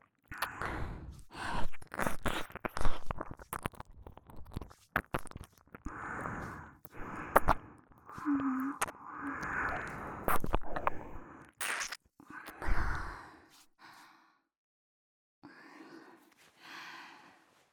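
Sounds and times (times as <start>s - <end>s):
ear licking sounds: 0.3s - 13.1s.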